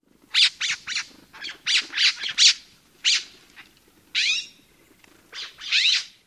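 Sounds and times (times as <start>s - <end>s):
calls: 0.3s - 6.2s.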